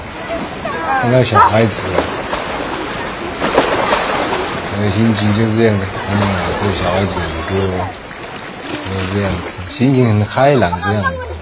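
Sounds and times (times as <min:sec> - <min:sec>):
ocean waves: 0:00.0 - 0:11.3
speech: 0:00.9 - 0:02.2, 0:04.8 - 0:08.0, 0:08.9 - 0:11.3.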